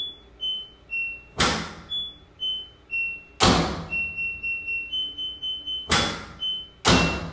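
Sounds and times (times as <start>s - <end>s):
washing machine button beeps played as tune: 0.0s - 7.3s
sharp thumps: 1.4s - 1.9s, 3.4s - 4.0s, 5.9s - 7.3s.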